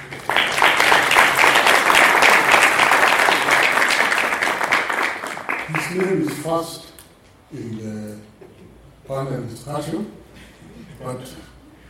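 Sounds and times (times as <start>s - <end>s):
audience applause: 0.0s - 6.5s
speech: 6.0s - 6.9s, 7.5s - 11.4s.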